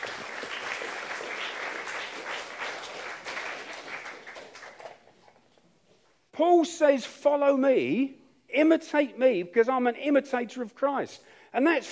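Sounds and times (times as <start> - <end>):
audience applause: 0.0 - 5.1
speech: 6.4 - 11.8.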